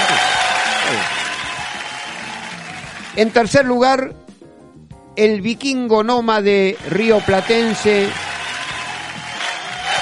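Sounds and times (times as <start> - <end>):
audience applause: 0.0 - 3.5, 6.7 - 10.0
speech: 3.2 - 4.2, 5.2 - 8.2.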